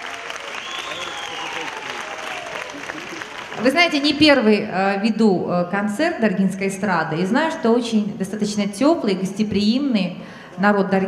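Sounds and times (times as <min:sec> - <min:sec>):
audience applause: 0:00.0 - 0:04.4
speech: 0:03.6 - 0:11.0.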